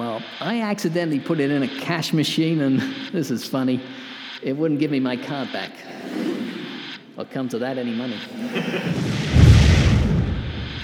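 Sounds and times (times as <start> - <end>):
speech: 0.2 - 6.3, 7.2 - 9.2
laughter: 8.1 - 9.2
laser wall blasting apart a chair: 8.1 - 10.8
crackling roar: 8.6 - 10.8.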